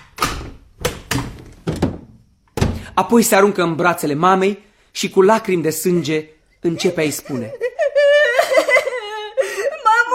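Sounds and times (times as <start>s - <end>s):
heavy hollow wooden thuds of a door being opened: 0.2s - 2.9s
speech: 3.0s - 7.6s
laughter: 5.9s - 10.1s.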